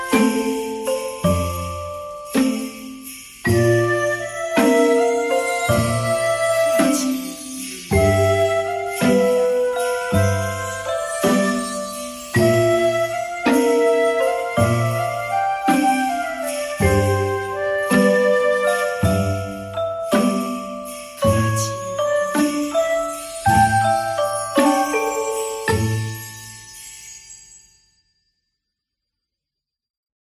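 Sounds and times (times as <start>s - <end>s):
flute playing a Christmas tune: 0.0s - 26.5s.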